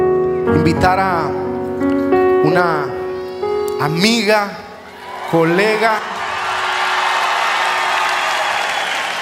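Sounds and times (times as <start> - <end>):
speech: 0.6 - 3.0, 3.8 - 4.6, 5.3 - 6.1
audience applause: 5.0 - 9.1.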